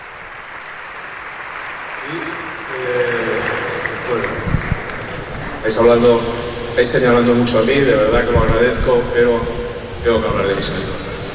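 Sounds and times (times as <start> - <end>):
audience applauding the players: 0.0 - 7.4
speech: 2.0 - 3.3, 5.6 - 11.0.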